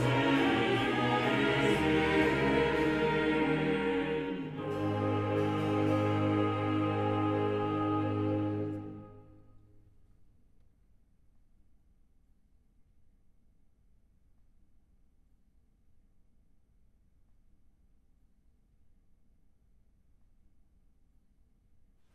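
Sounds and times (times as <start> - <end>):
chorale: 0.0 - 9.7.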